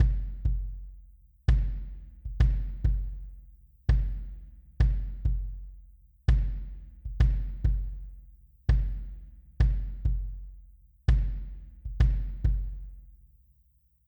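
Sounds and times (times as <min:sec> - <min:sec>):
Wave Drum kick drum: 0:00.0 - 0:13.1.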